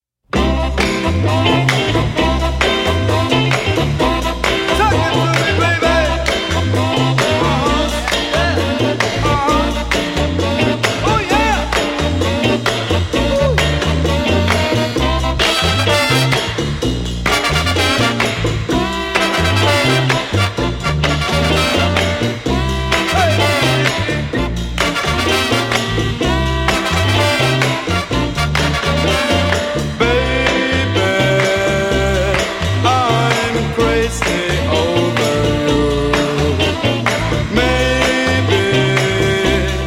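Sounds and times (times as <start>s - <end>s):
funky shingaling music: 0.3s - 39.8s.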